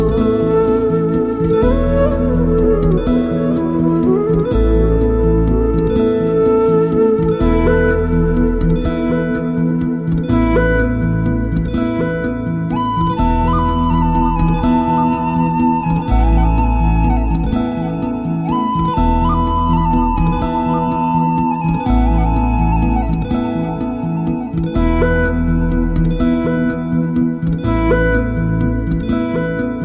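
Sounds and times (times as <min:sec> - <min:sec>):
Telugu background music ringtone: 0:00.0 - 0:29.8.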